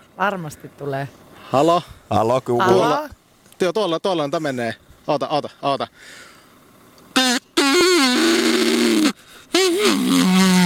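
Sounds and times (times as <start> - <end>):
speech: 0.2 - 6.3
game call blasts sounding like bull moose call: 7.2 - 10.6.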